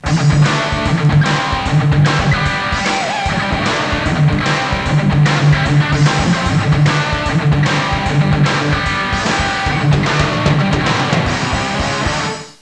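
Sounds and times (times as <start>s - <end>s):
rock music ringtone: 0.0s - 12.6s.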